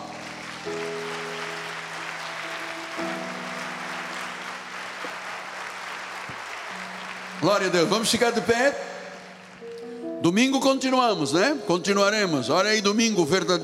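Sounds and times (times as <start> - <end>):
audience applauding: 0.0 - 10.1
speech: 7.4 - 8.9, 10.2 - 13.6.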